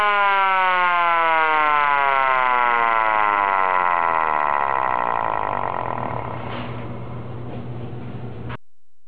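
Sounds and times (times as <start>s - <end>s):
navy siren: 0.0s - 7.0s.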